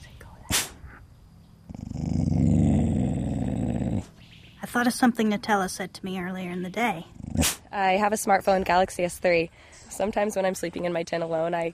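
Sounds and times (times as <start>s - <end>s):
sharp snap: 0.5s - 0.8s, 7.4s - 7.7s
dog growling: 1.6s - 4.2s, 7.0s - 7.7s
speech: 4.7s - 11.7s.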